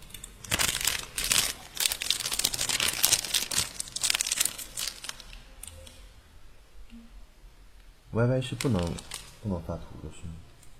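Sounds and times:
plastic bag being crumpled: 0.0s - 5.8s, 8.4s - 9.6s
speech: 8.2s - 10.5s.

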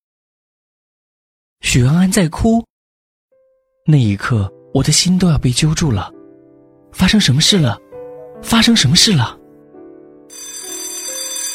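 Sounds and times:
speech: 1.6s - 2.7s, 3.9s - 6.2s, 6.9s - 7.8s, 8.4s - 9.4s
school dismissal bell ringing: 10.3s - 11.5s.

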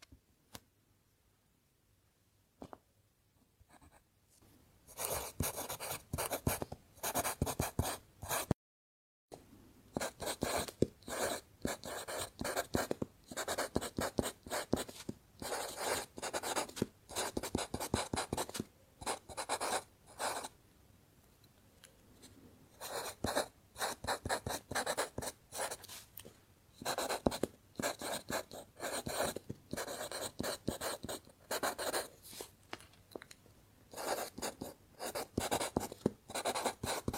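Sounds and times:
pencil writing: 4.9s - 8.5s, 10.0s - 20.5s, 22.8s - 26.0s, 26.8s - 32.4s, 33.9s - 37.1s.

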